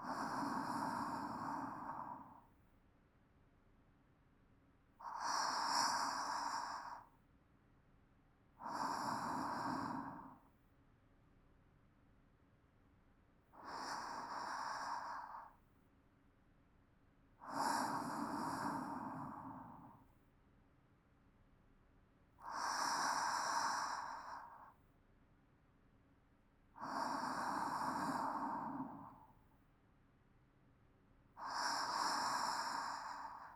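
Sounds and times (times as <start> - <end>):
calm sleep breathing: 0.0 - 2.6, 5.0 - 7.2, 8.5 - 10.6, 13.6 - 15.7, 17.4 - 20.2, 22.4 - 24.8, 26.7 - 29.6, 31.4 - 33.5.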